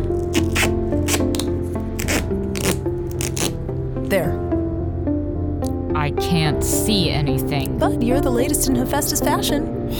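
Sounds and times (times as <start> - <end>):
duct tape torn off the roll and pressed into place: 0.0 - 3.6
steady tonal backdrop: 0.0 - 9.9
speech: 6.4 - 9.9.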